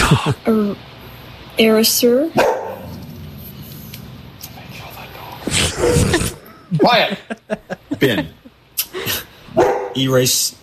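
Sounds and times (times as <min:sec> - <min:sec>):
speech: 0:00.1 - 0:01.0, 0:01.6 - 0:02.6, 0:05.8 - 0:09.2, 0:10.0 - 0:10.6
dog barking: 0:02.4 - 0:02.9, 0:09.5 - 0:10.0
laughter: 0:05.5 - 0:09.3.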